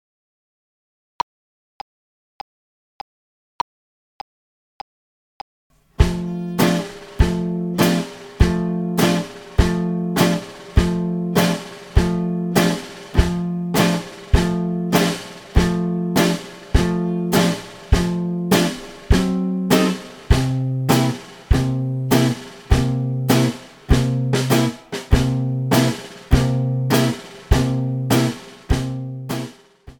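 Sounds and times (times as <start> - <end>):
slow two-beat music: 5.8 - 29.9.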